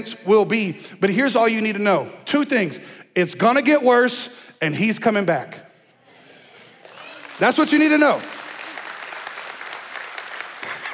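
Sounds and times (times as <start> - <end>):
speech: 0.0 - 5.7, 7.4 - 8.4
audience clapping: 6.8 - 10.9.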